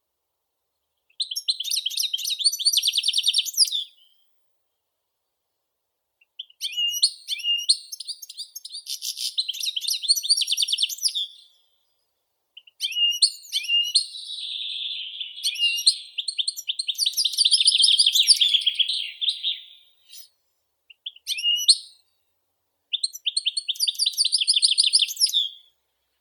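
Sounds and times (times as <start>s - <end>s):
European goldfinch singing twittering song: 1.1s - 4.1s, 6.4s - 11.6s, 12.6s - 20.3s, 20.9s - 22.0s, 22.9s - 25.7s.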